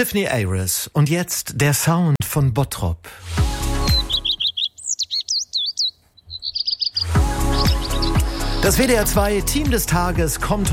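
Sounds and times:
speech: 0.0 - 3.4, 8.6 - 10.7
European robin singing: 3.4 - 10.7.

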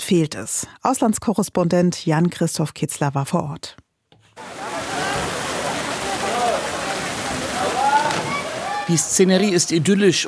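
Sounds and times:
speech: 0.1 - 3.8, 8.9 - 10.2
water gushing from thick pipe into pool: 4.4 - 9.1.

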